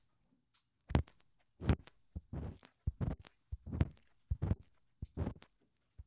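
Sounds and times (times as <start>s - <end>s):
ear pick in right ear: 1.0s - 5.5s.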